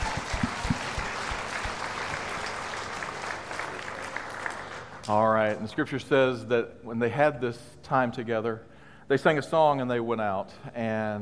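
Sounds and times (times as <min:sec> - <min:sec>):
audience clapping: 0:00.0 - 0:05.7
speech: 0:05.1 - 0:11.2.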